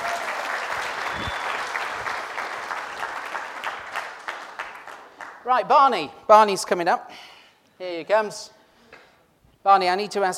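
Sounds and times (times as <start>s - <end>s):
small round of applause: 0.0s - 5.5s
speech: 5.5s - 8.6s, 9.6s - 10.3s.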